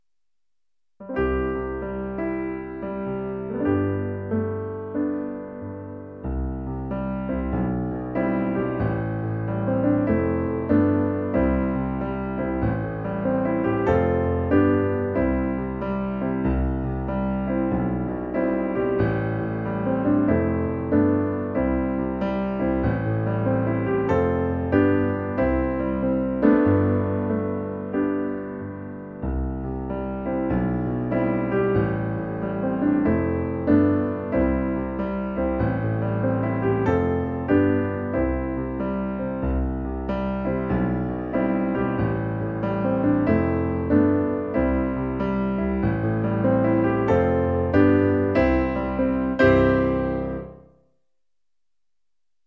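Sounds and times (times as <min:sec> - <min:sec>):
piano: 0:01.0 - 0:50.9.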